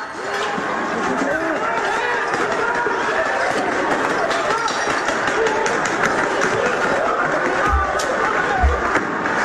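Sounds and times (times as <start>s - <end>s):
riot crowd shouting: 0.1s - 9.4s
dull low thumps: 7.6s - 9.0s.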